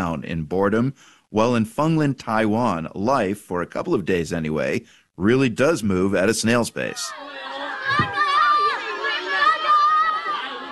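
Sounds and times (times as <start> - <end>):
speech: 0.1 - 8.2
children cheering at a snail race: 6.8 - 10.7.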